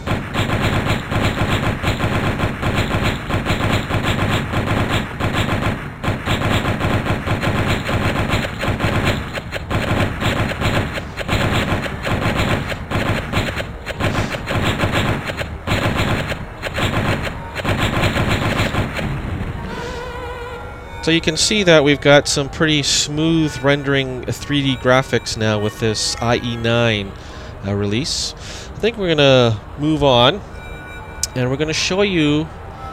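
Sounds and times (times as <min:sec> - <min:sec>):
machine gun fire in a 3D browser graphics demo: 0:00.0 - 0:19.9
speech: 0:21.1 - 0:30.5, 0:31.4 - 0:32.6.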